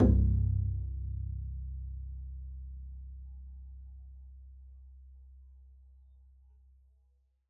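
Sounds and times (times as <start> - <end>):
double bass pizzicato: 0.0 - 4.2.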